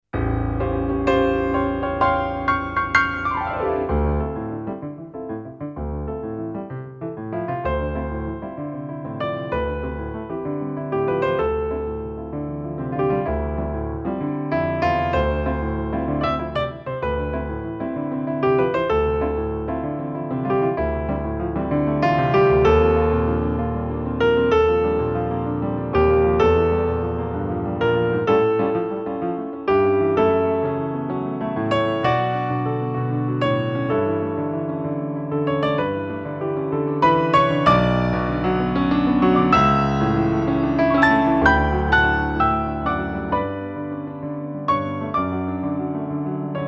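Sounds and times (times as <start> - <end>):
grand piano: 0.0 - 46.6.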